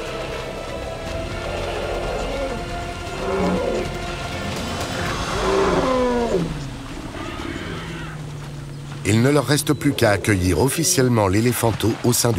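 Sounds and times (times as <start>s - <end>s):
lions roaring: 1.4s - 8.4s, 9.1s - 11.1s
speech: 9.1s - 12.3s.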